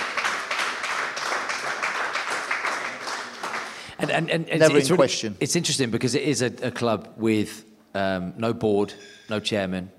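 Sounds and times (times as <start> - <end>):
round of applause: 0.0 - 4.3
speech: 4.0 - 9.9.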